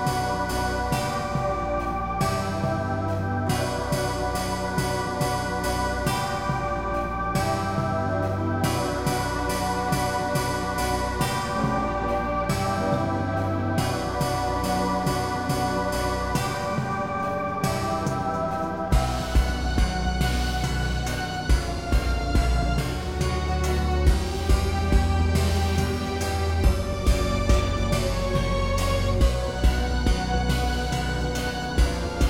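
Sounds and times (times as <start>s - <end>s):
despairing acoustic movie music: 0.0s - 32.2s.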